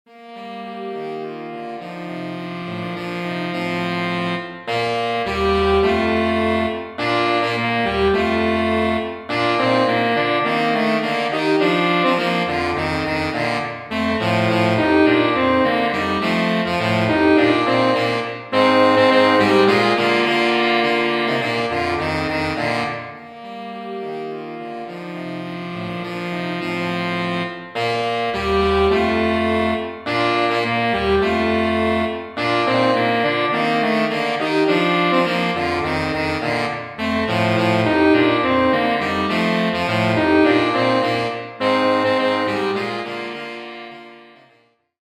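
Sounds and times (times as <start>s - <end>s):
saxophone trio playing: 0.1s - 44.8s.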